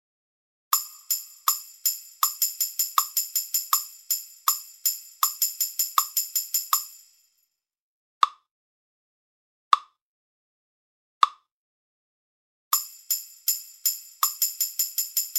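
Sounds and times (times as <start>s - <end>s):
binary reggae drum kit beat: 0.7s - 7.0s, 12.7s - 15.3s.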